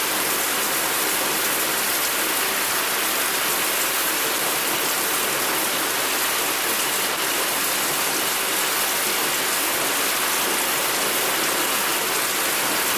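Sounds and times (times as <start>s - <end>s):
water running in a shower: 0.0s - 12.9s.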